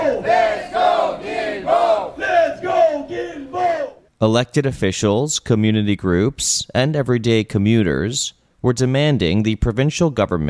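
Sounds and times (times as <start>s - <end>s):
protesters chanting outside De l'Église metro station in Verdun: 0.0s - 4.1s
speech: 4.2s - 10.4s.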